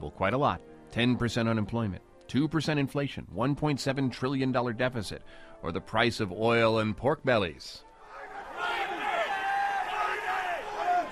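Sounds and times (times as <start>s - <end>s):
speech: 0.2s - 7.9s
traders screaming numbers in the oil futures pit at the New York Mercantile Exchange: 8.0s - 11.0s.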